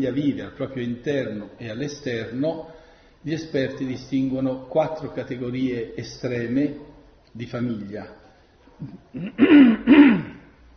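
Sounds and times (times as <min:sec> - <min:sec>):
speech: 0:00.0 - 0:08.2, 0:08.8 - 0:10.3
throat clearing: 0:08.8 - 0:10.5.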